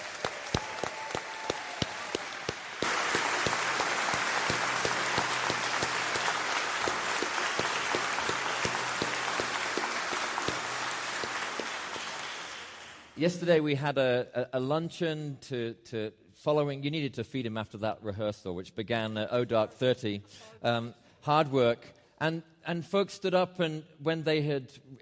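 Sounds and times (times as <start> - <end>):
audience applause: 0.0 - 13.2
speech: 13.2 - 25.0.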